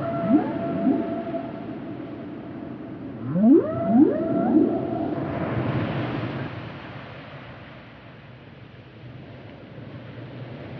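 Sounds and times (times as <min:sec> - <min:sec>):
whale calls with upward sweeps and whistle: 0:00.0 - 0:06.6.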